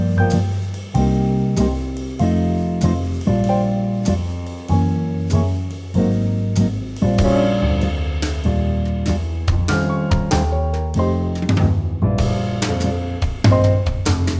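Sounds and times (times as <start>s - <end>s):
easy swing music at 96 BPM: 0.0s - 14.3s.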